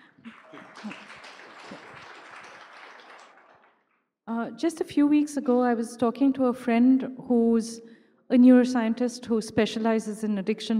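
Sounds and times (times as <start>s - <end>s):
audience applause: 0.0s - 3.8s
speech: 4.5s - 10.7s.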